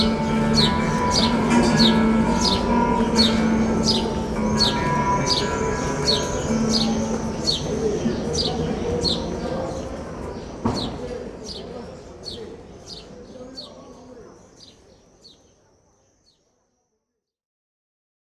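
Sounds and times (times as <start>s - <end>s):
guitar playing: 0.0s - 9.4s.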